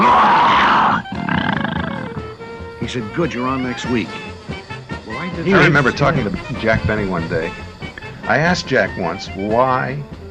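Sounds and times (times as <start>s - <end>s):
man's voice imitating a bear growl: 0.0s - 2.2s
speech: 2.9s - 4.3s, 5.4s - 7.6s, 8.3s - 10.2s.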